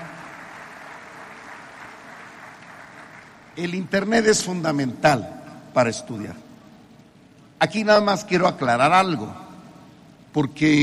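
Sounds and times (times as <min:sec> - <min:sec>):
audience applause: 0:00.0 - 0:03.6
speech: 0:03.6 - 0:06.5, 0:07.6 - 0:09.4, 0:10.3 - 0:10.8.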